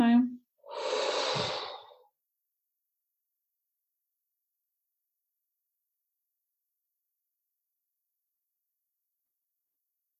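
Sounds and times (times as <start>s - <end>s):
breath pushed out through the mouth during a guided meditation: 0.6s - 2.1s.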